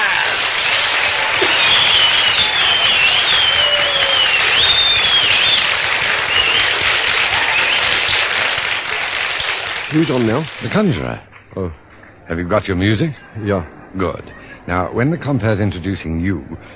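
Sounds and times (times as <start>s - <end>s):
audience applause welcoming a conjurer at a Bronkhorstspruit variety show: 0.0s - 11.4s
crowd noise: 0.0s - 16.7s
speech: 9.9s - 16.7s.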